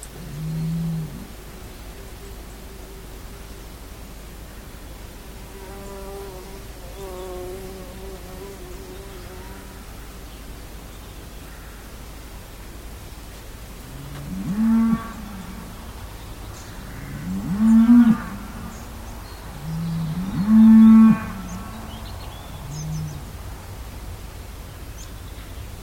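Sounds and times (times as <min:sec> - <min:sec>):
cows: 0:13.8 - 0:16.1, 0:16.7 - 0:23.4.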